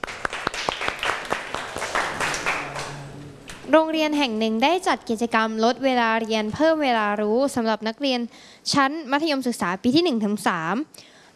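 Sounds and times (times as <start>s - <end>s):
classroom clapping for classmates: 0.0s - 3.1s
speech: 3.7s - 11.3s.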